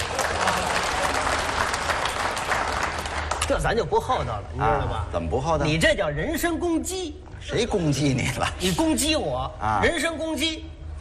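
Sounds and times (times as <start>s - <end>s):
audience applause: 0.0s - 3.5s
speech: 3.5s - 10.7s.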